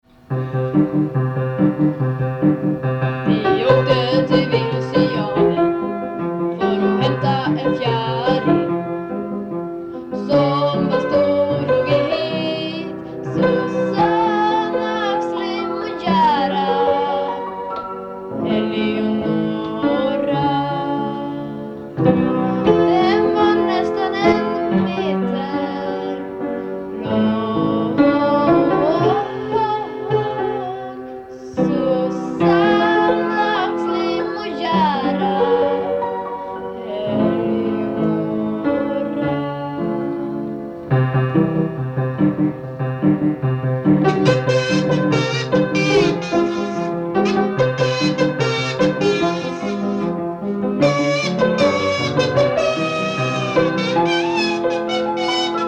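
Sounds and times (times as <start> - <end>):
piano: 0.0 - 55.6.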